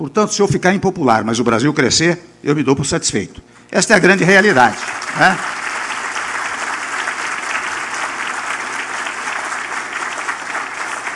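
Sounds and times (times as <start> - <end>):
speech: 0.0 - 5.6
audience applause: 4.2 - 11.1.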